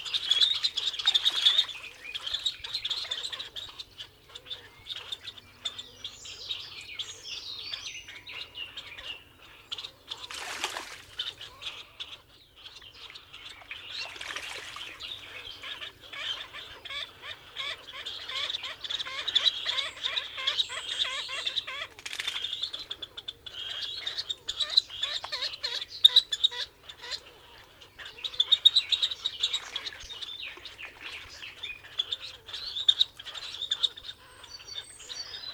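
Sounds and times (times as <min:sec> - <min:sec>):
grebe calling: 0:00.0 - 0:35.5.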